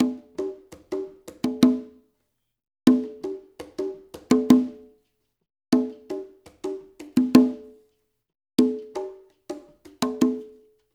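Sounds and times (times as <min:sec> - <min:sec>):
congas: 0:00.0 - 0:02.0, 0:02.9 - 0:04.9, 0:05.8 - 0:07.8, 0:08.6 - 0:10.6.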